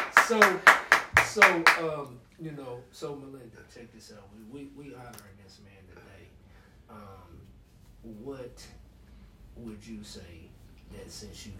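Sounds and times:
party guests clapping in a steady rhythm: 0.0s - 2.0s
speech: 0.3s - 0.7s, 1.3s - 6.2s, 6.9s - 8.8s, 9.6s - 11.5s.

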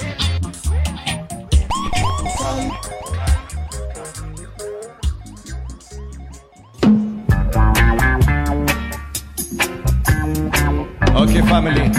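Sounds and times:
loud music track: 0.0s - 11.9s
thumping rhythmic backing: 0.0s - 11.9s
DJ siren sound effect: 1.6s - 8.2s
speech: 11.6s - 11.9s.

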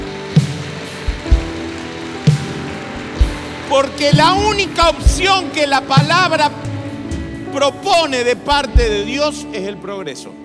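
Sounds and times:
audience applause: 0.0s - 6.6s
speech: 3.7s - 6.8s, 7.6s - 10.4s.

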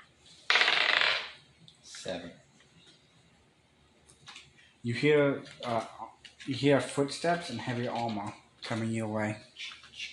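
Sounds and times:
twelve-sided die rolling across a surface: 0.5s - 1.4s
speech: 2.0s - 2.4s, 4.8s - 9.8s.

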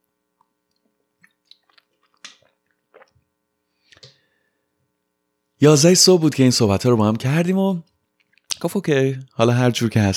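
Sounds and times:
person sipping a drink, slurping: 1.2s - 3.3s
speech: 5.6s - 7.9s, 8.6s - 10.1s.

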